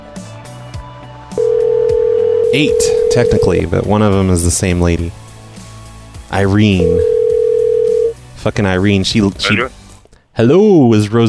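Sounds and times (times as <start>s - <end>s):
telephone dialing a store's number: 1.4s - 3.5s, 6.9s - 8.1s
speech: 2.5s - 5.2s, 6.3s - 7.1s, 8.4s - 9.8s, 10.4s - 11.2s.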